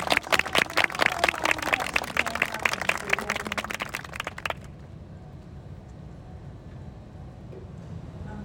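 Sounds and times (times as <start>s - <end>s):
audience applause: 0.0s - 4.8s.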